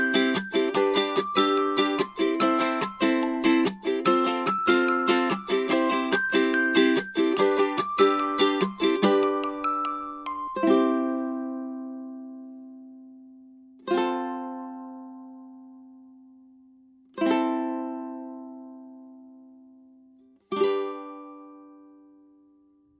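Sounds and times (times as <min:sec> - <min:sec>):
glockenspiel: 0:00.0 - 0:12.5
ukulele: 0:00.0 - 0:22.9.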